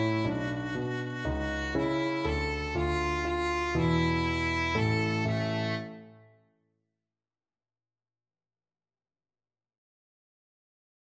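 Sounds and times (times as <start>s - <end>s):
violin: 0.0s - 6.2s.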